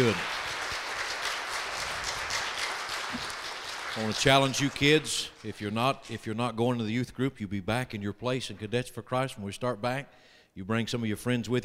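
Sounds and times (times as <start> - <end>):
speech: 0.0 - 0.3, 4.0 - 11.6
audience applause: 0.0 - 5.4.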